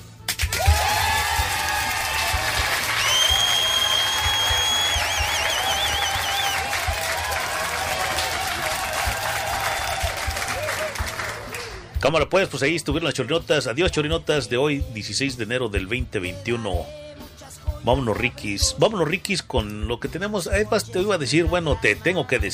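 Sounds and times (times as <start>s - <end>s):
audience applause: 0.4s - 11.9s
speech: 12.1s - 17.0s, 17.8s - 22.5s.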